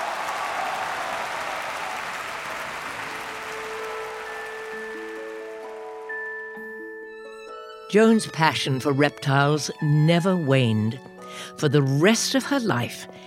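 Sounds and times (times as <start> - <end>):
crowd applauding: 0.0 - 7.0
sustained musical tones: 3.0 - 11.4
speech: 7.9 - 13.2.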